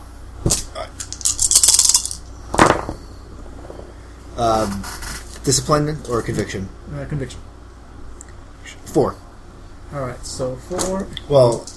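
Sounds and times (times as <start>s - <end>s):
dice rolled during a tabletop game: 0.5s - 3.0s, 11.4s - 11.7s
speech: 4.4s - 7.5s, 9.0s - 9.2s, 9.9s - 11.7s.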